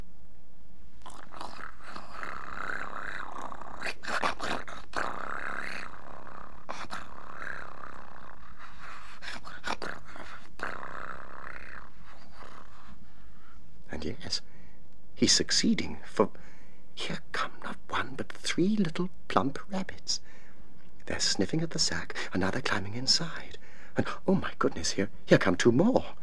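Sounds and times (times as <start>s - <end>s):
purring snore: 1.0s - 13.0s
speech: 14.0s - 14.5s, 15.2s - 16.4s, 18.1s - 20.3s, 21.1s - 26.2s.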